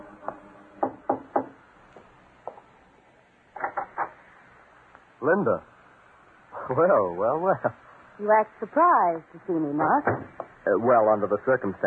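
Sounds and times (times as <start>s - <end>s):
knuckles knocking on a studio door: 0.8s - 1.6s, 10.0s - 10.5s
speech: 5.2s - 5.7s, 6.7s - 11.8s.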